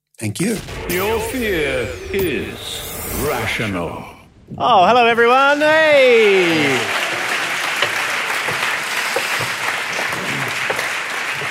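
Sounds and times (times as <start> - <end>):
speech: 0.2 - 7.0
audience round of applause: 5.9 - 11.4.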